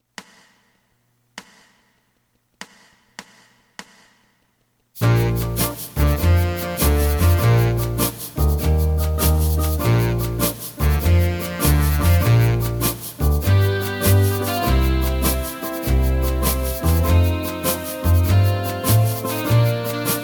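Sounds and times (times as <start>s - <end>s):
alto saxophone: 5.0s - 20.2s.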